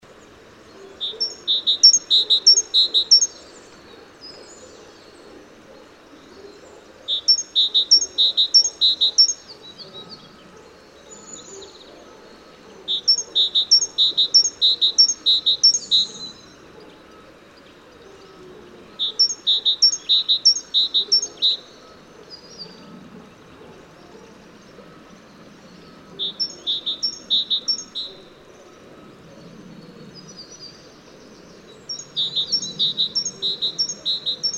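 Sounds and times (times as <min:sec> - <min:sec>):
great tit song: 0:00.7 - 0:05.2, 0:06.8 - 0:18.3, 0:18.9 - 0:24.8, 0:25.4 - 0:28.3, 0:31.9 - 0:34.5.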